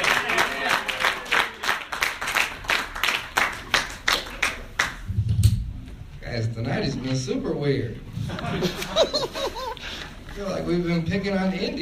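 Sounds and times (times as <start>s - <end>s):
audience applause: 0.0s - 5.0s
speech: 6.6s - 9.8s, 10.4s - 11.7s
laughter: 8.1s - 10.2s.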